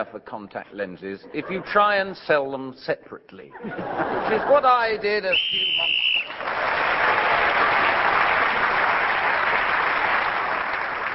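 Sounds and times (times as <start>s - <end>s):
speech: 0.0s - 5.9s
laughter: 1.2s - 2.2s, 3.5s - 6.2s
crowd applause: 4.0s - 11.1s
high-pitched whistle blast ending the round: 5.3s - 6.4s.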